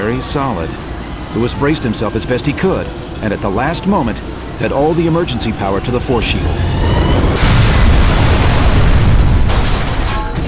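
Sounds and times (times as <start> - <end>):
speech: 0.2 - 7.2
vehicle smashing through heavy steel doors: 6.3 - 10.4.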